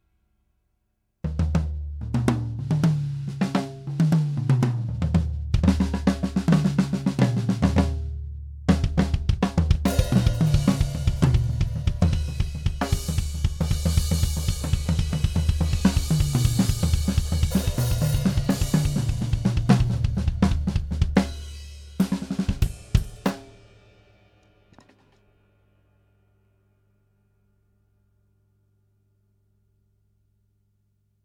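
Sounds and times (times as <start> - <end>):
drums: 1.2 - 25.8.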